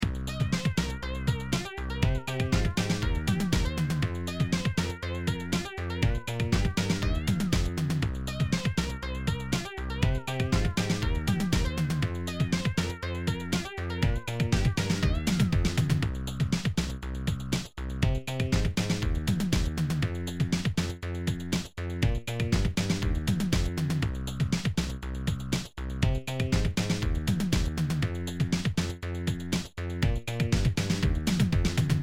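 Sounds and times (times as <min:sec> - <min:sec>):
bass lead sound over a beat: 0:00.0 - 0:32.0.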